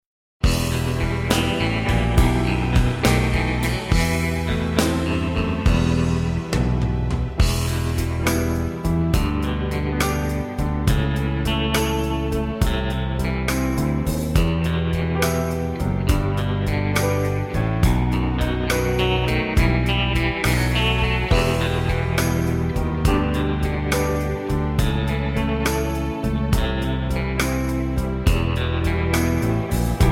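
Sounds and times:
backing track: 0.4 - 30.1.

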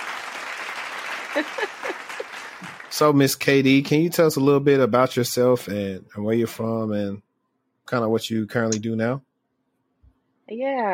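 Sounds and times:
audience applause welcoming a guest: 0.0 - 4.3
laughter: 1.2 - 6.9
speech: 1.4 - 2.0, 2.9 - 7.3, 7.9 - 9.3, 10.5 - 10.9.

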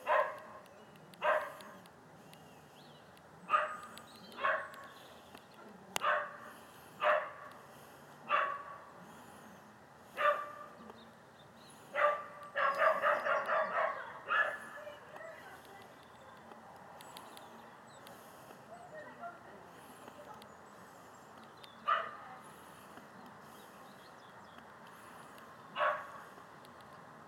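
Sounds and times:
dog barking: 0.0 - 0.6, 1.2 - 1.7, 3.5 - 4.8, 6.0 - 7.5, 8.3 - 8.8, 10.2 - 10.8, 11.9 - 14.8, 21.8 - 22.2, 25.7 - 26.3.

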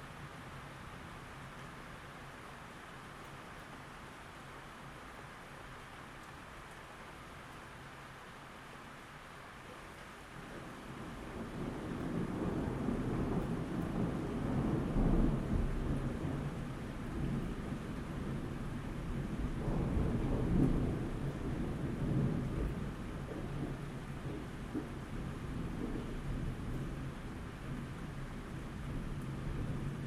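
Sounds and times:
nighttime rain: 0.0 - 30.0
thunder: 11.3 - 27.1.

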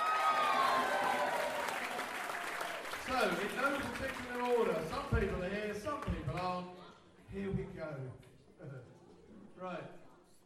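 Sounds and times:
crowd at a raffle evening cheering and whooping: 0.0 - 2.8
crowd at a raffle evening applauding an organiser: 0.0 - 6.6
speech: 3.2 - 9.0, 9.6 - 10.0.

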